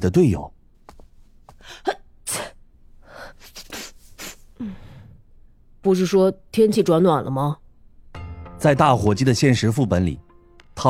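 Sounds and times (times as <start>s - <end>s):
speech: 0.0s - 0.6s, 5.8s - 7.6s, 8.6s - 10.2s
person sneezing: 1.6s - 5.0s.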